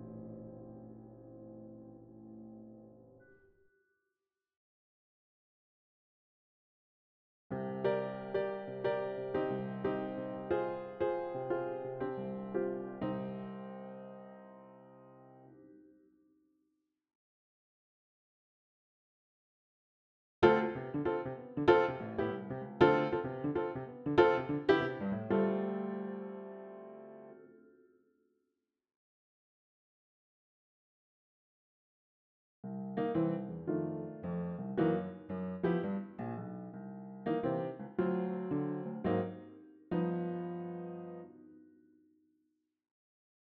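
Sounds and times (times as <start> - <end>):
upright piano: 0.0 - 3.2, 7.5 - 15.6, 20.4 - 27.4, 32.7 - 41.7.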